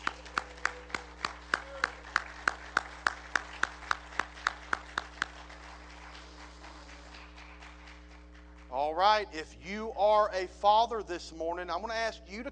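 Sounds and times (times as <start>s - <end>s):
round of applause: 0.0s - 9.2s
speech: 9.0s - 12.5s.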